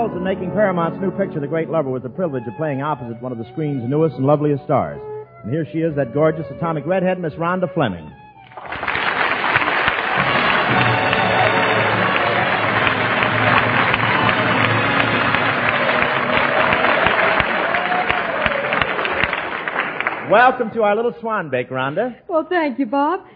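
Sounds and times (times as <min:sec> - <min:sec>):
speech: 0:00.0 - 0:08.8, 0:20.3 - 0:23.3
people cheering: 0:08.5 - 0:20.9
audience applause: 0:08.5 - 0:21.0.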